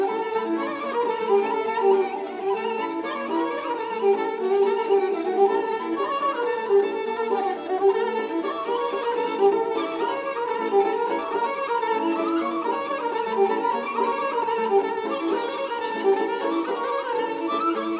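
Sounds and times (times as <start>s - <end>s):
Bulgarian folk melodies: 0.0s - 17.9s.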